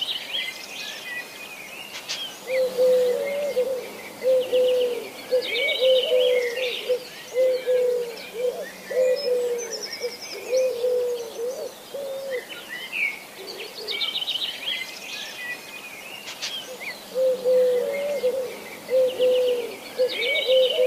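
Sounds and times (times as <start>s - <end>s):
other birds chirping and twittering: 0.0s - 20.8s
Eurasian collared dove cooing: 2.4s - 12.7s, 13.4s - 14.2s, 16.7s - 20.8s.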